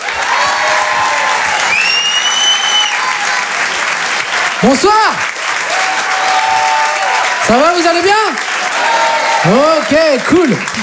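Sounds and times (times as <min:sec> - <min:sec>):
comedy club crowd applauding: 0:00.0 - 0:10.8
shrill whistle: 0:01.6 - 0:03.2
speech: 0:04.6 - 0:05.4, 0:07.5 - 0:08.5, 0:09.4 - 0:10.8.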